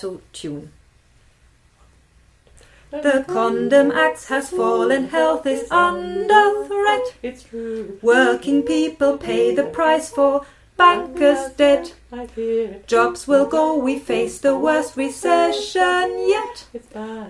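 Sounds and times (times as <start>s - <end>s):
alto part: 2.9s - 16.6s.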